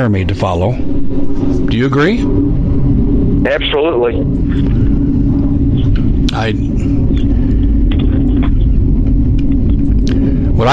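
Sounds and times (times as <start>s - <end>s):
speech: 0.0s - 1.0s, 1.6s - 2.6s, 3.4s - 4.8s, 5.8s - 7.1s
F-35 fighter jets flying overhead: 0.0s - 10.7s.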